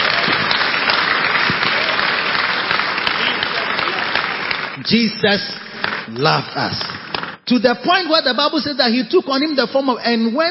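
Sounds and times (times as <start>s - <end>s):
audience applauding: 0.0s - 7.4s
speech: 4.8s - 10.4s.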